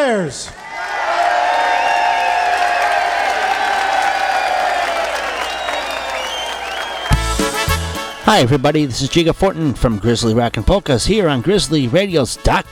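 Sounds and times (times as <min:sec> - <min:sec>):
speech: 0:00.0 - 0:00.6, 0:08.3 - 0:12.7
audience applause and cheering: 0:00.6 - 0:09.2.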